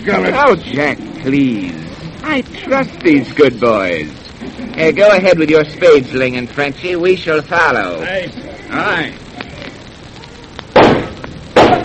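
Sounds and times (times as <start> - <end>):
speech: 0.0 - 4.2, 4.8 - 9.2
gunshots: 10.7 - 11.8.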